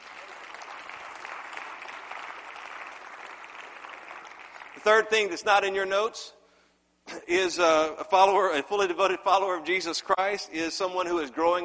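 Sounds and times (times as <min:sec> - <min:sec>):
audience hand clapping: 0:00.0 - 0:05.2
speech: 0:04.8 - 0:06.4, 0:07.1 - 0:11.6.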